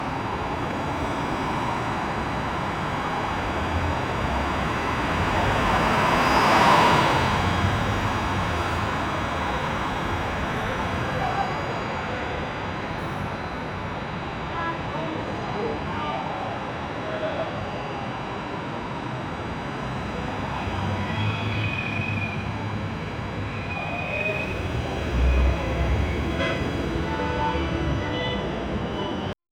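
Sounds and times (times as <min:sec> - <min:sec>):
New York City street ambience: 0:00.0 - 0:29.4.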